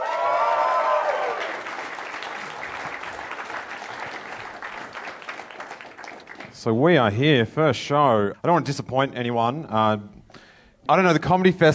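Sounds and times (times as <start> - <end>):
crowd cheering and whooping: 0.0 - 3.2
crowd applause: 0.0 - 6.6
speech: 6.6 - 10.2, 10.9 - 11.7.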